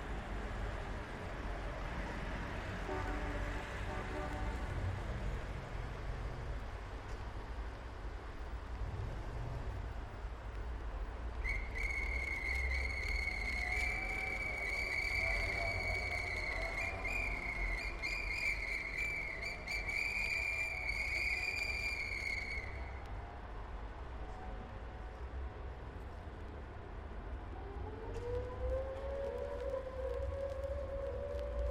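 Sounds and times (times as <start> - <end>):
automobiles, trucks, buses, mopeds and motorcycles: 0.0 - 31.7
police and ambulance sirens: 11.4 - 23.1, 27.4 - 31.7.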